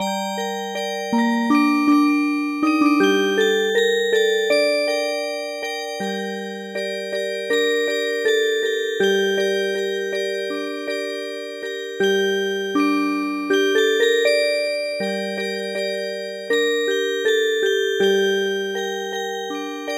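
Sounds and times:
music box: 0:00.0 - 0:19.9.

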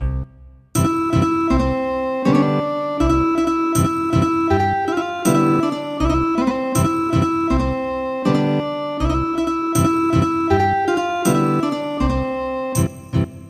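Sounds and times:
ethnic guitar music: 0:00.8 - 0:13.4.

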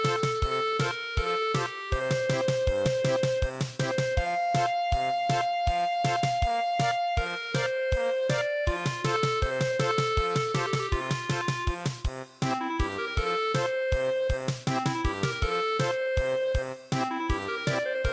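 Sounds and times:
traditional German polka in MIDI: 0:00.0 - 0:18.1.

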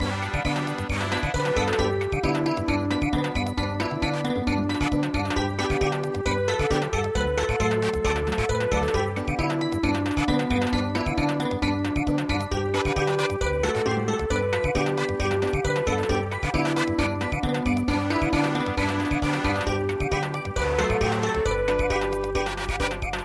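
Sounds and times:
MIDI samba music: 0:00.0 - 0:23.2.

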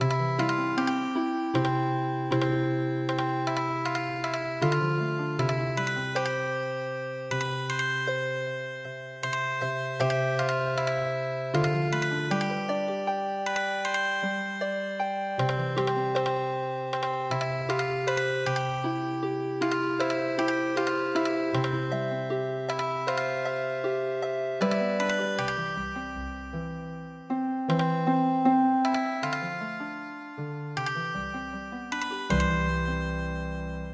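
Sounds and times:
MIDI healing harp music: 0:00.0 - 0:33.9.

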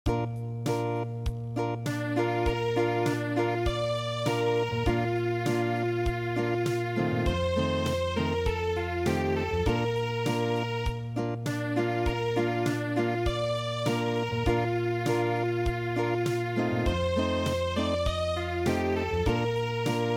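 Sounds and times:
acoustic music: 0:00.0 - 0:20.1.

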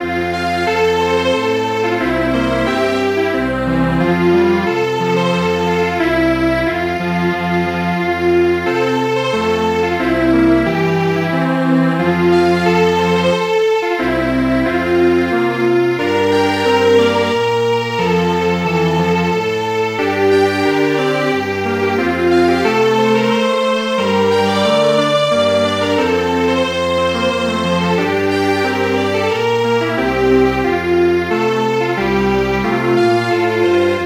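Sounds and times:
string quartet playing: 0:00.0 - 0:34.0.

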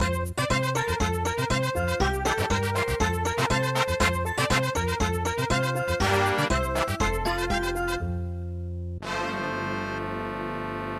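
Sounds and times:
mambo music: 0:00.0 - 0:10.9.

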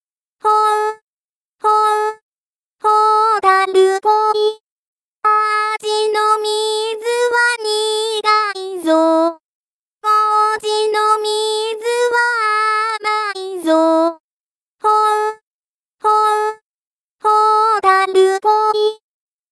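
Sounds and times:
vocals: 0:00.4 - 0:01.0, 0:01.6 - 0:02.2, 0:02.8 - 0:04.6, 0:05.2 - 0:09.4, 0:10.0 - 0:14.2, 0:14.8 - 0:15.4, 0:16.0 - 0:16.6, 0:17.2 - 0:19.0.

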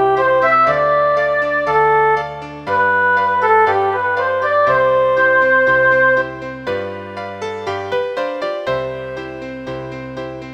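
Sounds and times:
MIDI school piano playing traditional tune: 0:00.0 - 0:10.5.

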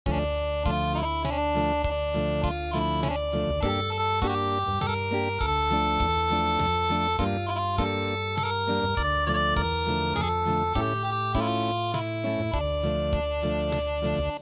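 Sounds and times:
acoustic music: 0:00.1 - 0:14.3.

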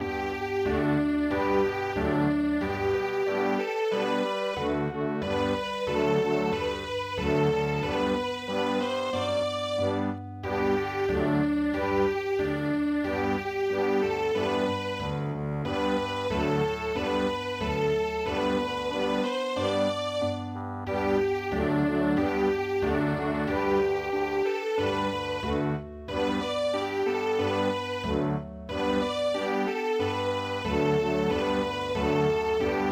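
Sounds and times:
Viennese waltz music: 0:00.0 - 0:32.9.

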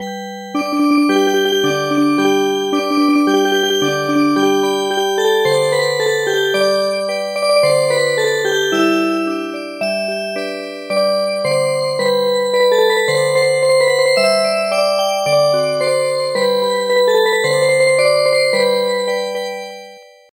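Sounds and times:
traditional music box: 0:00.0 - 0:20.2.

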